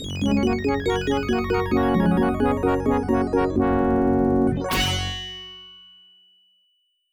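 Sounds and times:
OPL2 synthesized fanfare: 0.0s - 5.6s.

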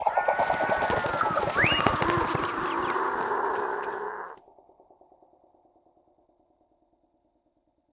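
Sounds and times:
bird flying across to the other side: 0.0s - 4.4s.

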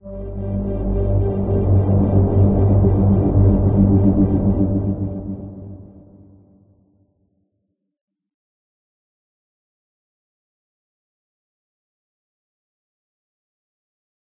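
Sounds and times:
transition end sound: 0.0s - 6.4s.

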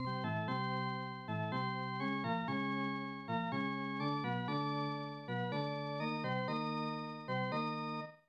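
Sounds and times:
organ music: 0.0s - 7.6s.

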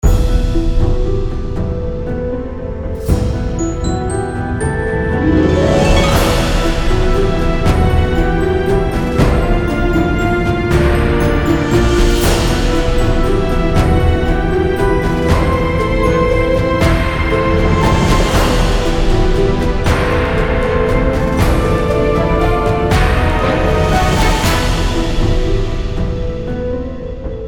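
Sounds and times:
ice dungeon background game music: 0.1s - 27.4s.

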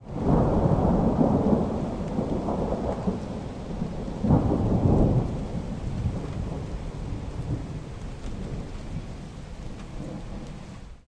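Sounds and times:
thunder: 0.0s - 10.8s.

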